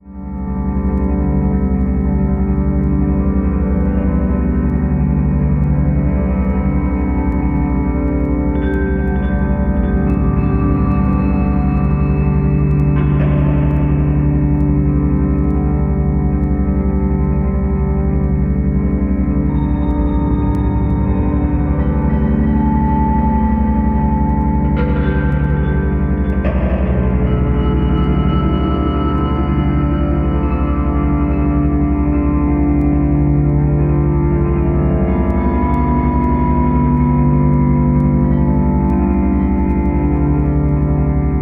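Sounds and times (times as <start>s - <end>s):
instrumental music: 0.0s - 41.4s.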